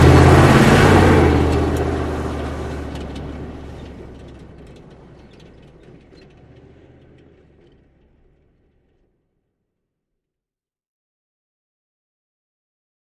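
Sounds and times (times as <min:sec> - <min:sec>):
Humvee driving various maneuvers: 0:00.0 - 0:09.3.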